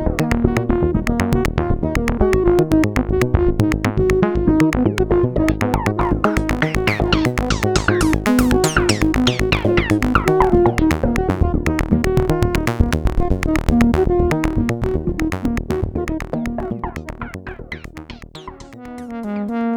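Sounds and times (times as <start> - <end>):
analogue synthesizer lead bass: 0.0 - 19.7.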